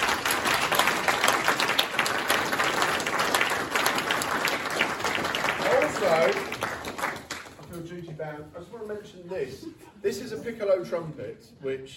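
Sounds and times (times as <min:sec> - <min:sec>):
audience applause: 0:00.0 - 0:07.7
speech: 0:09.1 - 0:11.9.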